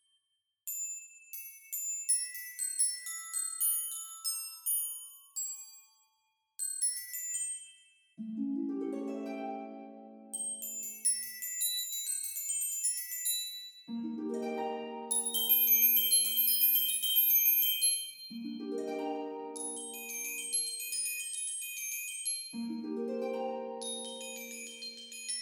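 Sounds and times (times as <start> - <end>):
glockenspiel: 0.7 - 25.4.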